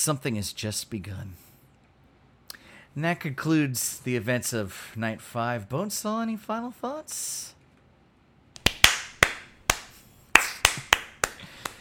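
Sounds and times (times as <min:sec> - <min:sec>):
speech: 0:00.0 - 0:01.4, 0:03.0 - 0:07.6
hand clapping: 0:08.6 - 0:11.7.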